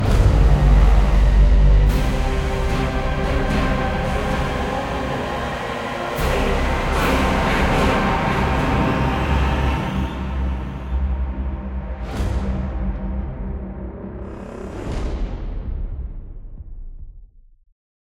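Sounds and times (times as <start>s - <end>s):
short music: 0.0s - 12.7s.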